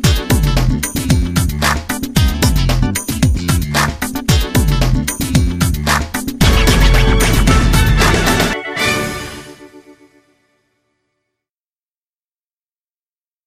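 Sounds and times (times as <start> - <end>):
instrumental music: 0.0 - 10.6.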